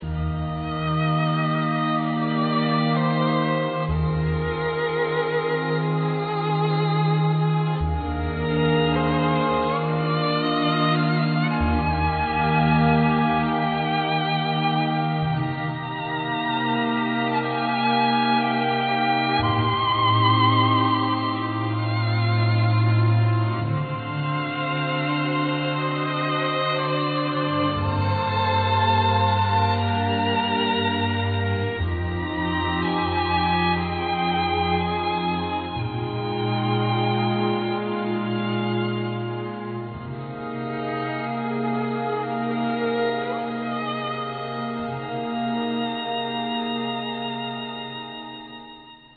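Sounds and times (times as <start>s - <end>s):
music: 0.0s - 49.1s.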